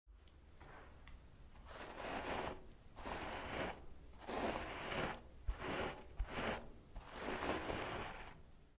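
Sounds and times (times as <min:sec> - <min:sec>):
hair being combed: 0:01.6 - 0:08.4.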